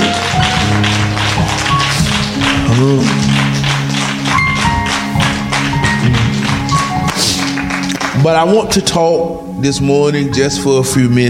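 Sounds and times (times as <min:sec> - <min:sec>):
audience clapping in praise: 0:00.0 - 0:08.8
sustained low musical tones: 0:00.0 - 0:11.2
speech: 0:02.8 - 0:03.2, 0:08.2 - 0:11.2.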